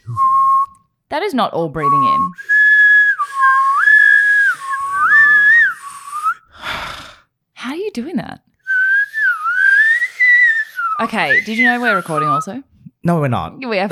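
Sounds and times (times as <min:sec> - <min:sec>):
person whistling: 0:00.0 - 0:00.8, 0:01.8 - 0:06.7, 0:08.7 - 0:12.5
speech: 0:01.1 - 0:02.5, 0:08.0 - 0:08.5, 0:11.0 - 0:13.9.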